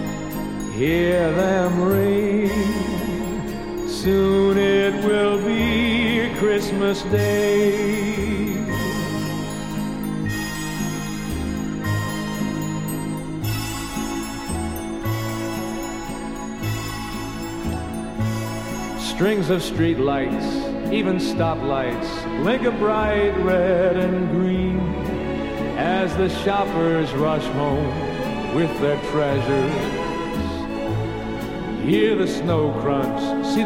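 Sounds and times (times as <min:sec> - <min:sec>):
orchestra: 0:00.0 - 0:33.6
male vocalist singing: 0:00.6 - 0:10.1, 0:18.9 - 0:31.0, 0:31.7 - 0:33.6.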